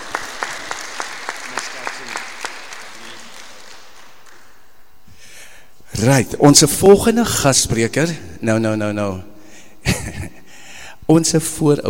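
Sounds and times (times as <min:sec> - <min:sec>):
audience applause: 0:00.0 - 0:04.6
speech: 0:01.9 - 0:02.4, 0:06.0 - 0:09.3, 0:11.1 - 0:11.8.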